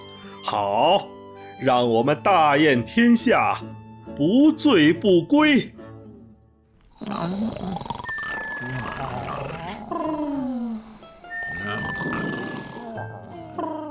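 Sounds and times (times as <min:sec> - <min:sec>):
speech: 0:00.5 - 0:05.8
many people snoring: 0:06.8 - 0:13.8.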